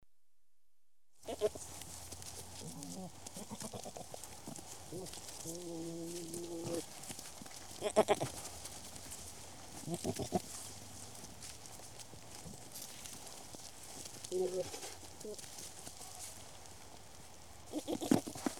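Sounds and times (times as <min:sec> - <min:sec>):
goats bleating while mating: 0:01.2 - 0:01.9, 0:02.6 - 0:06.8, 0:07.8 - 0:08.4, 0:09.8 - 0:10.5, 0:17.7 - 0:18.4.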